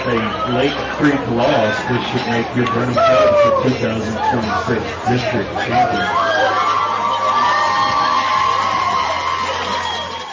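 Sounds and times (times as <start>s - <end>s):
speech: 0.1s - 6.5s
hometown crowd cheering and applauding after a high school baseball game: 6.1s - 10.3s.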